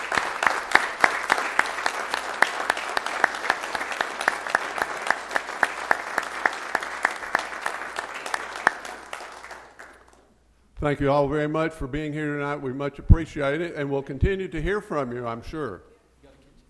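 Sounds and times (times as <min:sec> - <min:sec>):
audience applauding to congratulate a project team: 0:00.0 - 0:10.3
speech: 0:10.8 - 0:15.9.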